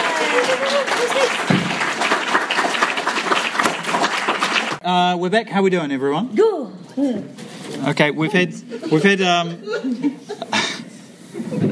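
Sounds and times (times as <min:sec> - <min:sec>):
audience applause for players of a live tabletop adventure game show: 0:00.0 - 0:04.8
speech: 0:00.5 - 0:01.6, 0:04.9 - 0:10.4.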